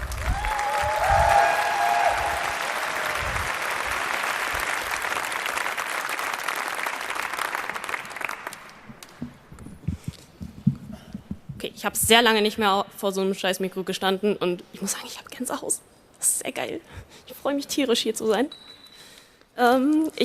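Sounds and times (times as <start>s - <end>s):
audience applause for a performer at a stage contest in northern Germany: 0.0s - 8.9s
speech: 11.8s - 18.7s, 19.6s - 20.2s.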